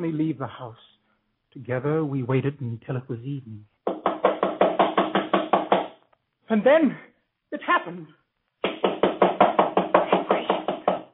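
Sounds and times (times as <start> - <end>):
speech: 0.0 - 3.7, 6.5 - 8.2
knocking on a door: 3.8 - 6.0, 8.6 - 11.1.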